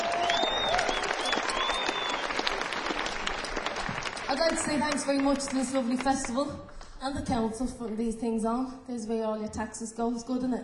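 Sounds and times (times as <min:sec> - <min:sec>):
festival audience applause after dancing to a live set: 0:00.0 - 0:06.4
speech: 0:04.4 - 0:10.6.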